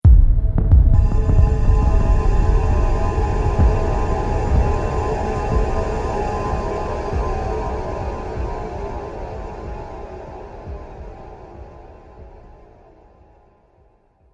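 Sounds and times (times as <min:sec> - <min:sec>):
percolating fear trailer hit: 0:00.1 - 0:10.0.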